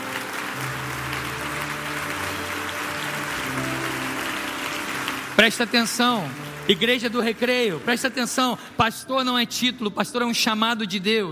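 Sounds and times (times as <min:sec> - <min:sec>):
audience applause: 0:00.0 - 0:08.9
speech: 0:05.4 - 0:11.3.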